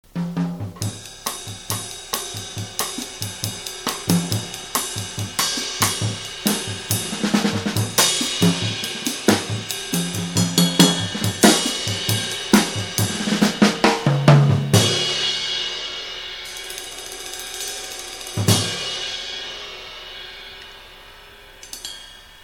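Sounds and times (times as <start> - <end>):
jazz music: 0.0 - 22.4.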